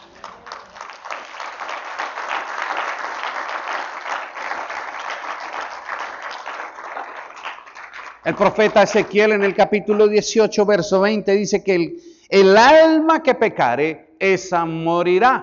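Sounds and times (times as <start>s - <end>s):
audience applause: 0.0s - 10.0s
speech: 8.2s - 15.4s.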